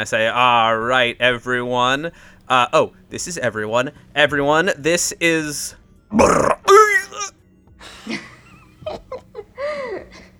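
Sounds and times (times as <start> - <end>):
speech: 0.0 - 6.6
voice imitating a monstrous frog creature's noise: 6.1 - 7.3.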